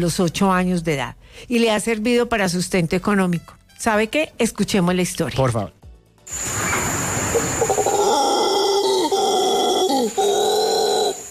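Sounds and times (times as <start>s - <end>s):
speech: 0.0s - 6.7s
howler monkeys howling: 6.5s - 11.2s.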